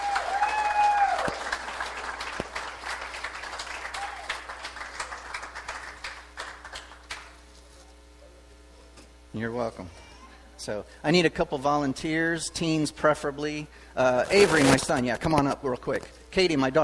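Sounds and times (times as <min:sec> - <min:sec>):
audience applause: 0:00.0 - 0:07.3
speech: 0:09.4 - 0:10.0, 0:10.6 - 0:16.8.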